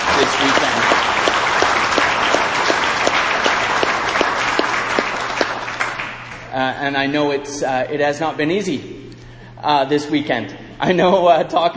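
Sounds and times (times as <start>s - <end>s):
audience applause: 0.0s - 6.5s
speech: 0.2s - 0.6s, 6.6s - 8.9s, 9.6s - 11.7s.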